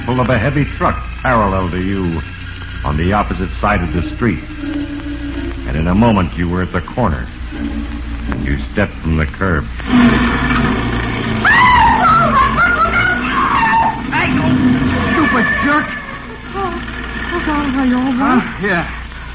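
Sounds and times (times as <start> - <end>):
car skidding at a street corner: 0.0 - 19.1
car engine noise: 0.0 - 19.3
speech: 0.1 - 5.1, 5.7 - 10.9, 15.4 - 16.0, 17.4 - 19.0.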